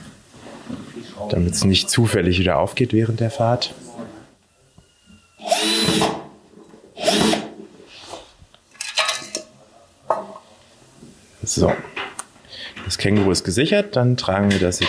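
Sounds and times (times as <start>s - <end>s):
speech: 1.2s - 3.8s, 13.0s - 14.8s
choppier buzzes and clicks of tool work: 5.4s - 6.2s, 7.0s - 7.6s
power drill fitting a hinge and padlock: 5.4s - 6.2s, 7.0s - 7.5s.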